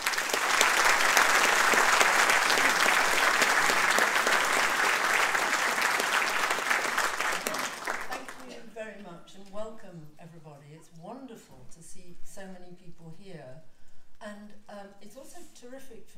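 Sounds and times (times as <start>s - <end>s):
audience applause welcoming a speaker to a book talk: 0.0s - 8.6s.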